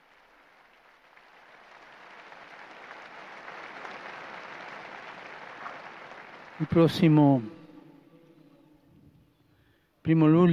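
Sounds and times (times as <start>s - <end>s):
crowd applause: 0.0s - 8.1s
speech: 6.6s - 7.6s, 10.1s - 10.5s.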